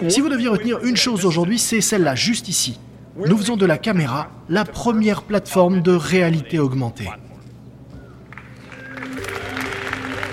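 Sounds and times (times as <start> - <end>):
speech: 0.0 - 7.2
crowd applauding: 8.3 - 10.3.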